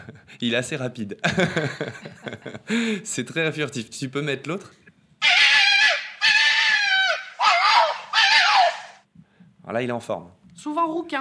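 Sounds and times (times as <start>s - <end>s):
speech: 0.4s - 4.8s, 9.7s - 11.1s
red fox call: 5.2s - 9.0s.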